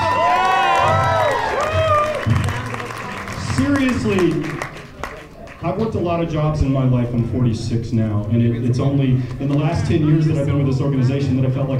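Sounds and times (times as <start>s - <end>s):
crowd cheering and whooping: 0.0s - 3.7s
crowd applauding: 0.0s - 5.8s
speech: 3.8s - 4.6s, 5.6s - 11.7s.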